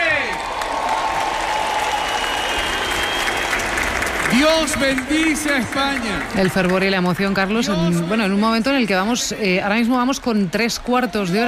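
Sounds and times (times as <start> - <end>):
crowd cheering and clapping at a Mass in Spain: 0.0 - 8.4
speech: 4.4 - 11.4.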